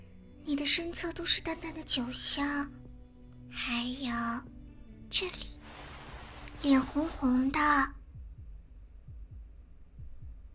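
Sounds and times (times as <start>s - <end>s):
speech: 0.5s - 2.8s, 3.5s - 4.5s, 5.1s - 5.6s, 6.6s - 8.0s
heartbeat thumps: 5.6s - 10.5s.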